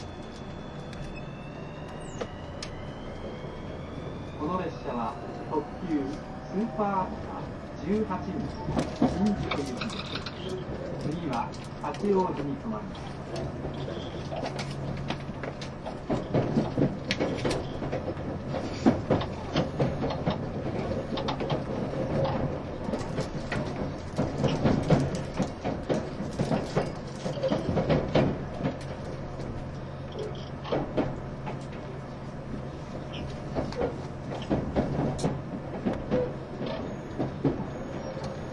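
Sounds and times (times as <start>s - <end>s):
rising and falling whines: 0.0s - 7.8s
train rumbling: 0.0s - 38.5s
clacks, clunks and rattling: 7.9s - 38.5s.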